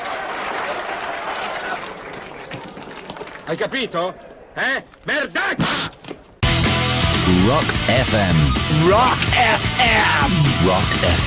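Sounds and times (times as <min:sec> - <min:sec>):
audience applause in a film excerpt: 0:00.0 - 0:03.8
speech: 0:03.5 - 0:06.0, 0:07.3 - 0:11.2.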